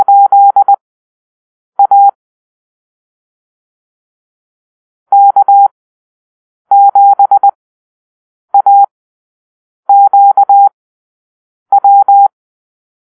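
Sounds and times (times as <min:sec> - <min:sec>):
morse code call-sign drill: 0:00.0 - 0:00.8, 0:01.8 - 0:02.1, 0:05.1 - 0:05.7, 0:06.7 - 0:07.6, 0:08.6 - 0:08.9, 0:09.9 - 0:10.7, 0:11.7 - 0:12.3.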